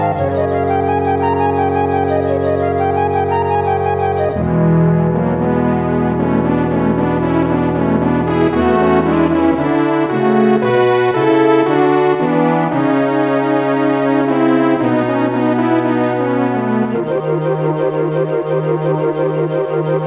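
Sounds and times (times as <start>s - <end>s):
mellow ambient music: 0.0s - 20.0s.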